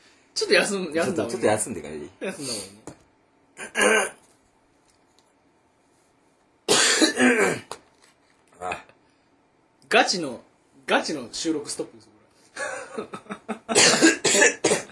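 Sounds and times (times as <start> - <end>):
speech: 0.4 - 2.9, 3.6 - 4.2, 9.9 - 14.1
person coughing after soup went down the windpipe: 3.6 - 4.2, 6.7 - 7.8, 13.7 - 14.9.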